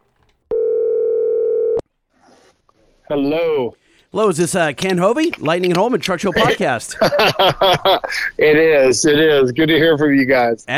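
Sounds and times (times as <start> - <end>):
telephone dialing tone: 0.5 - 1.8
speech: 3.1 - 10.7
laughter: 6.0 - 8.6.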